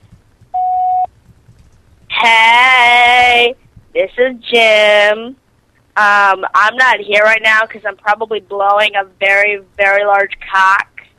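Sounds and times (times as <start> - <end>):
faint low hum: 0.0 - 11.1
answering machine electronic beep: 0.6 - 1.1
speech: 4.0 - 5.4, 6.0 - 10.9.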